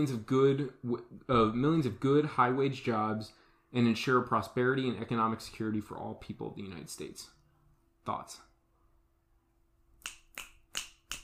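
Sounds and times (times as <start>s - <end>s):
speech: 0.0s - 7.4s, 8.0s - 8.5s
snap clapping: 10.0s - 11.2s.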